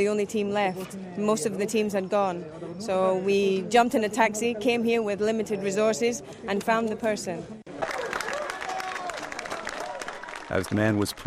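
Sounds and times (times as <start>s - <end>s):
speech: 0.0s - 7.6s, 10.5s - 11.2s
onlooking crowd clapping and cheering in Port-au-Prince: 7.7s - 11.2s.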